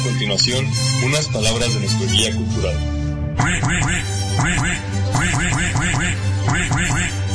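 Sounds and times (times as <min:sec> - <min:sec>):
speech: 0:00.2 - 0:07.3
duck quacking: 0:03.4 - 0:07.2.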